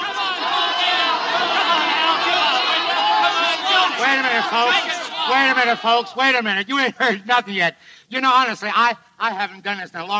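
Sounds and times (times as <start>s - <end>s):
nightclub crowd yelling: 0.0s - 6.4s
speech: 4.1s - 10.1s.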